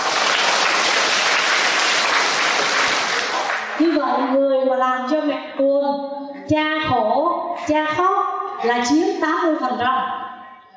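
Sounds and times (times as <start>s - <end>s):
audience applause: 0.0s - 3.8s
speech: 3.8s - 10.2s.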